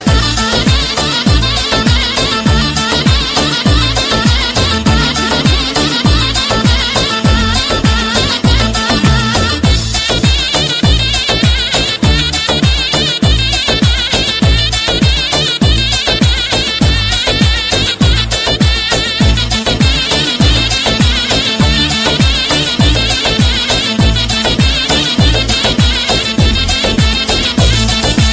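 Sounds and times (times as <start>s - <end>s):
Arabic DJ ringtone music: 0.0s - 28.3s.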